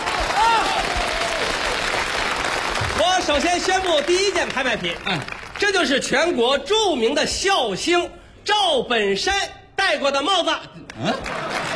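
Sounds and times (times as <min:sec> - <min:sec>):
audience clapping at the 1993 Spring Festival Gala: 0:00.0 - 0:06.2, 0:10.9 - 0:11.7
speech: 0:03.3 - 0:11.6.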